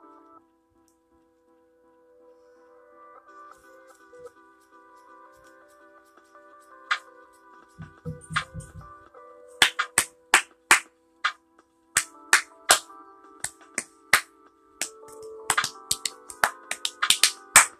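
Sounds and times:
hand clapping: 7.8 - 8.8, 9.6 - 10.9, 12.0 - 17.7.

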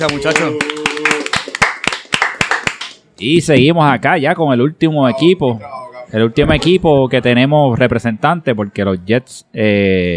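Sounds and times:
speech: 0.0 - 0.7, 3.2 - 10.1
small group clapping: 0.0 - 3.1.

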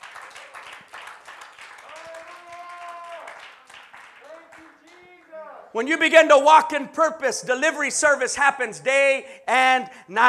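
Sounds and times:
audience hand clapping: 0.0 - 5.4
speech: 5.7 - 10.2.

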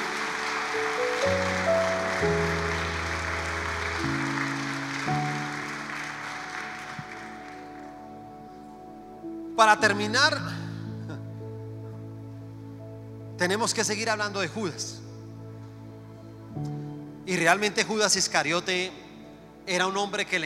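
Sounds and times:
crowd applauding: 0.0 - 8.2
sustained keyboard chords: 0.0 - 20.4
speech: 2.2 - 2.6, 9.6 - 10.6, 13.4 - 15.0, 17.3 - 19.0, 19.7 - 20.4.

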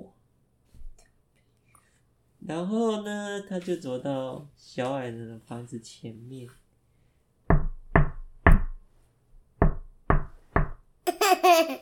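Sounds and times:
speech: 2.5 - 6.6
knocking on a door: 7.5 - 8.8, 9.6 - 10.8.

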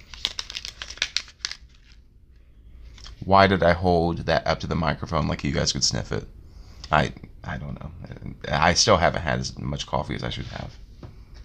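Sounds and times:
crinkly packet being opened: 0.0 - 2.0
speech: 3.2 - 10.8.

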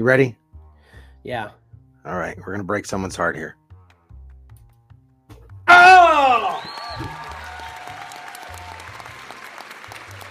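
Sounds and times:
speech: 0.0 - 0.4, 1.2 - 3.6
studio audience applause: 6.0 - 10.2.

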